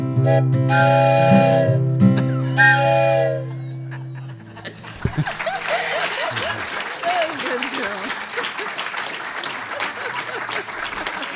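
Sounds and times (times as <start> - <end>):
locomotive whistle on old recording: 0.2 - 3.9
laughter: 2.0 - 11.3.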